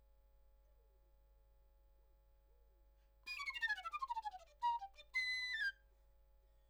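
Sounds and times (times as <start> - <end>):
flute: 3.3 - 5.8.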